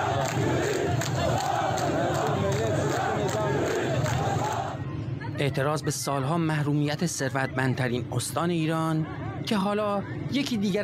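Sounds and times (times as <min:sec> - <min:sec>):
night protest crowd in Khuzestan chanting an Arab Spring slogan: 0:00.0 - 0:04.9
speech: 0:05.4 - 0:10.8.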